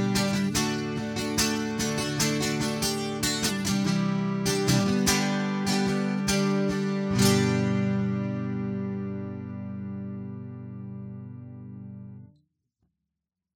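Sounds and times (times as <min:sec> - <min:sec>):
Line 6 Variax JTV-69 modelling Martin D-28 acoustic guitar: 0:00.0 - 0:12.3.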